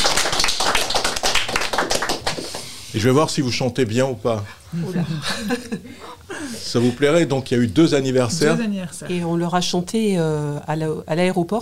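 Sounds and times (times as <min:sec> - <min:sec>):
crowd applauding: 0:00.0 - 0:02.8
speech: 0:02.9 - 0:11.6
laughter: 0:04.7 - 0:07.0.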